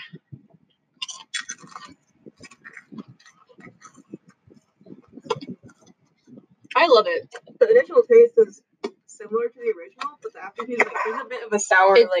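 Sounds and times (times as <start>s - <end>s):
chewing salt and vinegar potato chips: 1.0s - 4.1s
speech: 6.8s - 8.6s, 9.3s - 12.1s.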